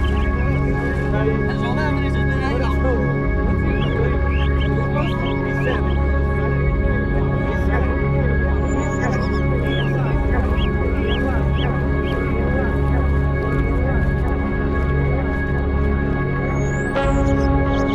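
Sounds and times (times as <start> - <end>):
seagulls calling: 0.0 - 14.0
voices murmuring: 0.0 - 17.9.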